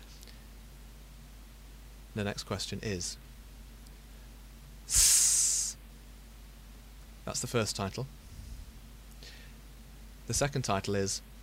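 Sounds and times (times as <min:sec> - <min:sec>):
speech: 0:02.2 - 0:03.3, 0:07.3 - 0:08.2, 0:10.3 - 0:11.3
hiss: 0:04.9 - 0:05.8.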